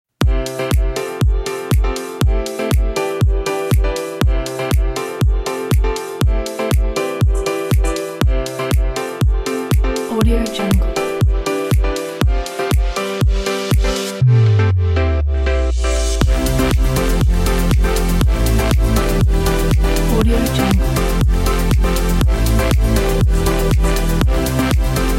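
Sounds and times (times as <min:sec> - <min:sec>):
happy upbeat summer travel music: 0:00.2 - 0:25.1.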